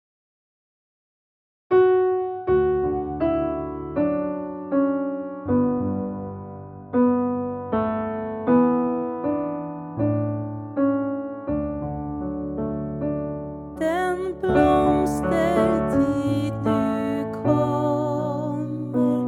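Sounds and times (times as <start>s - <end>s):
piano: 1.7s - 19.2s
person singing: 13.8s - 19.2s.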